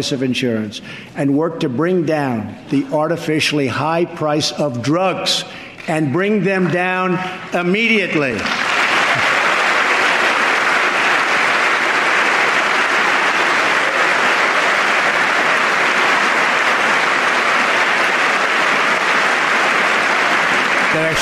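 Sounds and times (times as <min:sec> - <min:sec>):
speech: 0:00.0 - 0:08.7
clapping: 0:08.4 - 0:21.2.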